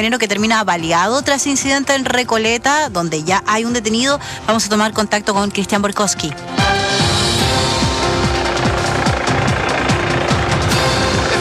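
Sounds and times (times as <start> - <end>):
speech: 0.0 - 6.9
police helicopter arriving and landing: 6.6 - 11.4.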